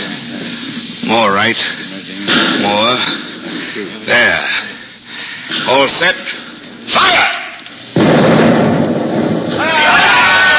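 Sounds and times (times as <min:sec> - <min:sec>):
speech: 0:01.1 - 0:03.1, 0:05.5 - 0:07.3
ship's cannon firing: 0:07.9 - 0:09.6
voices shouting: 0:09.5 - 0:10.5.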